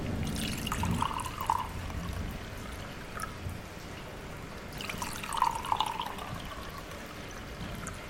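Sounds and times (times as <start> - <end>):
whisky glugging and gurgling as it is poured into glasses: 0.2 - 3.4, 4.7 - 8.0.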